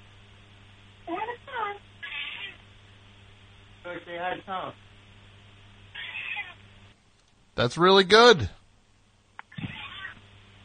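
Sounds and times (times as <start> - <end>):
cat meowing: 2.0 - 2.6, 5.9 - 6.6, 9.5 - 10.2
speech: 3.9 - 4.9, 7.6 - 8.6.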